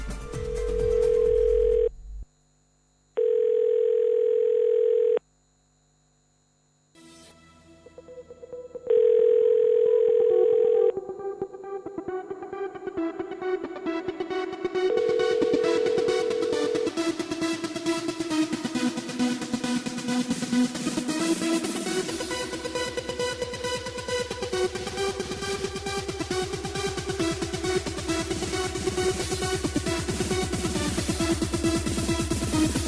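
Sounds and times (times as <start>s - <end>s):
dense electronic music: 0.0s - 2.2s, 10.9s - 32.8s
telephone dial tone: 0.6s - 1.9s, 3.2s - 5.2s, 8.9s - 11.0s, 14.9s - 17.0s.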